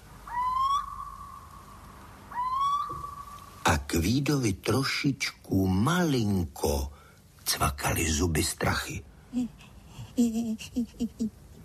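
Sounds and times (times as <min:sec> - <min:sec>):
little owl calling: 0:00.2 - 0:03.7
speech: 0:03.9 - 0:11.4.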